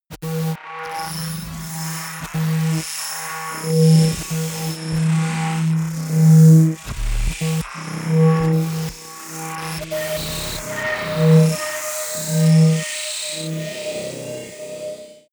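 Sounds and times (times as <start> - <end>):
sci-fi generator drone: 3.6 - 15.3.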